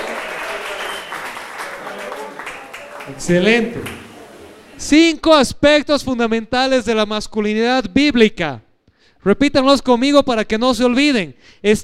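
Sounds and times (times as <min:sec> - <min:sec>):
audience applause: 0:00.0 - 0:04.8
speech: 0:03.1 - 0:04.0, 0:04.8 - 0:08.6, 0:09.2 - 0:11.8.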